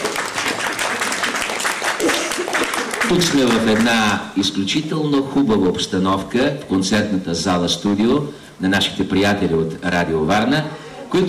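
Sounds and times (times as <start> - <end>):
crowd clapping: 0.0 - 4.3
speech: 3.1 - 11.2.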